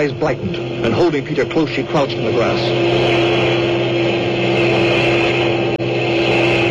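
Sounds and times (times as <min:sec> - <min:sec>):
speech: 0:00.0 - 0:03.5
convoy of heavy trucks roaring past: 0:00.0 - 0:06.7.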